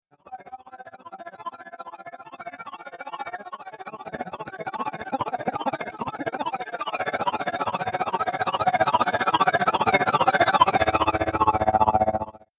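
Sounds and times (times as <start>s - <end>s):
robotic sci-fi ascending synth arpeggio building intensely: 4.0s - 12.4s.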